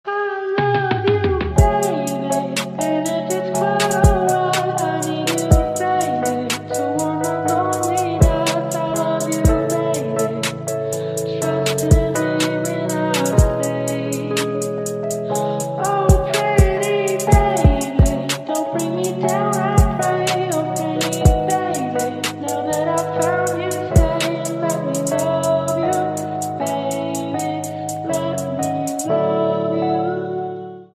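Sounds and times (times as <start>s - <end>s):
lofi remix music: 0.1s - 30.8s.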